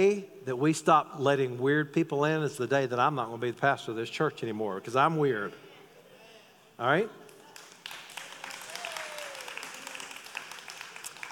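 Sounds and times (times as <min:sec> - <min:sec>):
speech: 0:00.0 - 0:05.6, 0:06.8 - 0:07.2
audience clapping in a large room: 0:07.3 - 0:11.2.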